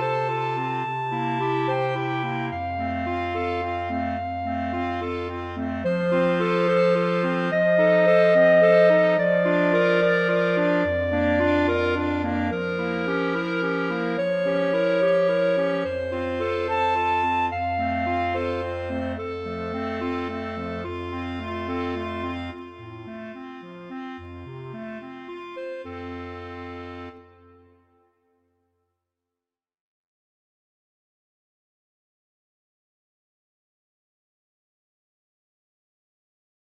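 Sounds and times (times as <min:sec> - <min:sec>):
clarinet quartet: 0:00.0 - 0:27.5.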